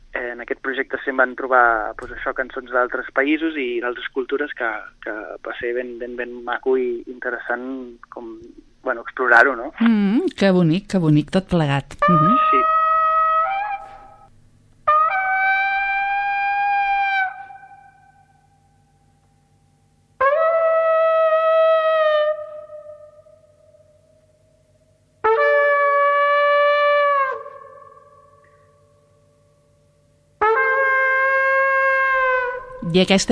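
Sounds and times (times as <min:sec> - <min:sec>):
speech: 0:00.3 - 0:12.8, 0:33.0 - 0:33.3
solo trumpet playing: 0:12.0 - 0:18.3, 0:20.2 - 0:23.1, 0:25.2 - 0:28.5, 0:30.4 - 0:33.3.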